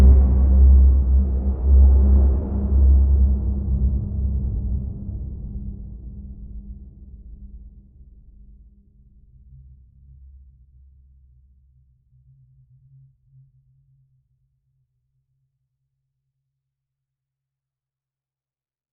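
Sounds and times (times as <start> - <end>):
interstellar turbulence galactic roar: 0.0 - 6.2.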